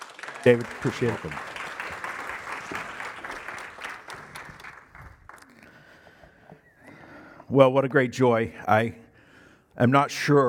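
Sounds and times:
audience applause welcoming a speaker: 0.0s - 5.7s
speech: 0.4s - 1.5s, 7.5s - 9.0s, 9.8s - 10.4s.

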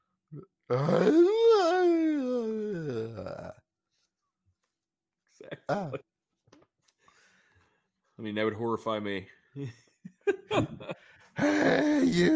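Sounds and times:
speech: 0.3s - 2.2s, 5.7s - 6.1s, 8.2s - 12.3s
voice imitating bellowing scream from forest: 0.7s - 3.5s, 11.4s - 12.3s.

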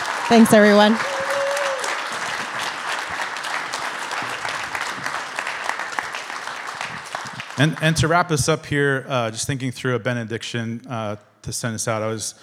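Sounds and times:
audience round of applause: 0.0s - 8.4s
speech: 0.3s - 1.1s, 7.6s - 12.4s.

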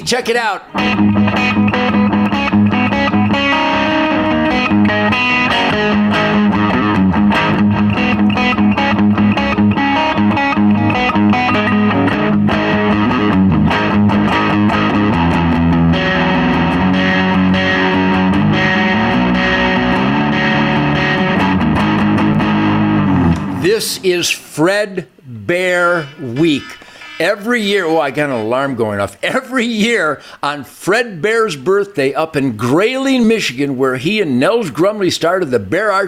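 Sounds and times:
speech: 0.0s - 2.1s, 23.8s - 36.0s
heavily distorted electric guitar: 0.0s - 28.8s.

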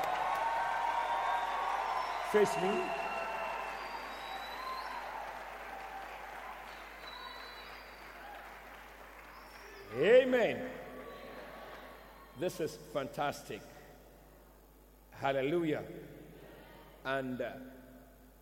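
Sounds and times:
audience clapping: 0.0s - 11.9s
speech: 2.3s - 3.0s, 10.0s - 10.8s, 12.4s - 13.7s, 15.2s - 16.2s, 17.0s - 17.8s.

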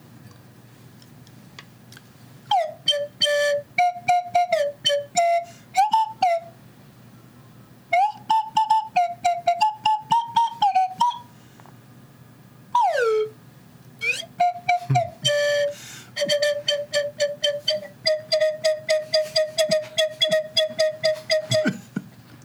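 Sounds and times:
slide whistle solo: 2.5s - 6.6s, 7.9s - 11.3s, 12.7s - 13.4s, 14.0s - 21.8s.

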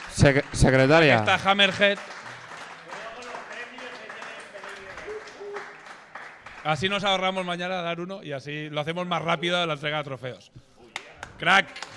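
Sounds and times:
applause: 0.0s - 7.4s, 11.0s - 11.9s
speech: 0.2s - 2.2s, 6.6s - 10.7s, 11.4s - 11.8s.

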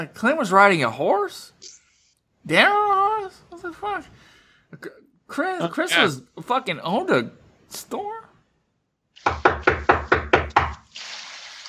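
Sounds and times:
speech: 0.0s - 1.8s, 2.4s - 8.3s, 9.2s - 9.8s
firm knocks on a door: 9.3s - 10.8s.

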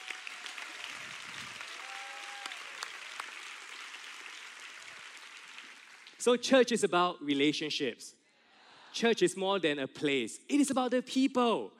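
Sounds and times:
audience applause: 0.0s - 6.2s
speech: 6.2s - 8.2s, 9.0s - 11.7s.

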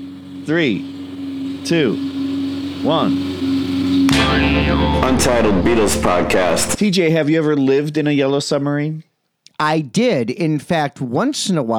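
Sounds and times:
lawnmower engines droning: 0.0s - 6.8s
speech: 0.5s - 1.0s, 1.6s - 2.1s, 2.8s - 3.4s, 4.1s - 11.7s.

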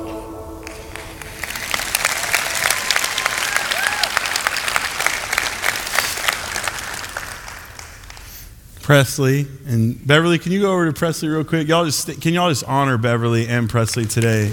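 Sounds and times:
audience cheering and applause: 0.6s - 8.4s
speech: 8.9s - 14.5s.

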